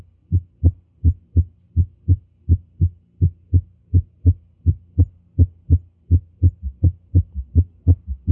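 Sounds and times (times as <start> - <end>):
heart beating in summation gallop rhythm: 0.0 - 8.2.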